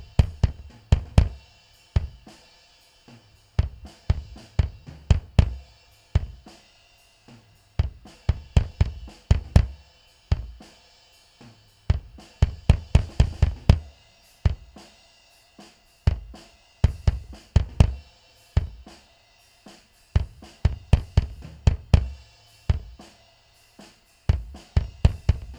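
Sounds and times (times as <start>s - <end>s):
bass drum: 0.0s - 2.4s, 3.2s - 6.6s, 7.3s - 10.7s, 11.9s - 14.9s, 16.0s - 19.0s, 20.2s - 23.1s, 24.3s - 25.5s.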